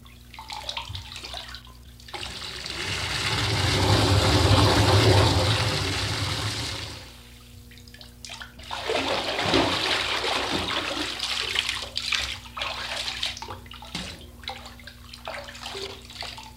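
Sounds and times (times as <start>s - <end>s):
water pouring into bathtub: 0.4s - 7.4s, 8.6s - 13.9s.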